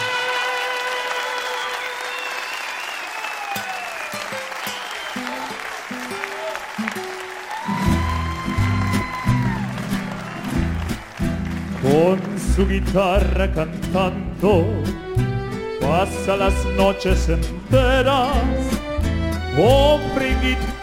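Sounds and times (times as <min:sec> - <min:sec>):
audience applause in Donosti: 0:00.0 - 0:13.1
speech: 0:12.0 - 0:15.3, 0:15.9 - 0:18.8, 0:19.6 - 0:20.8.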